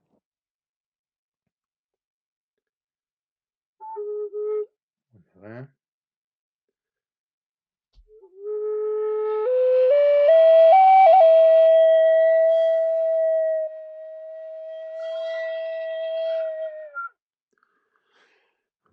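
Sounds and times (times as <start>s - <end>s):
Native American wooden flute playing: 3.8s - 4.8s, 8.1s - 17.2s
speech: 5.4s - 5.8s.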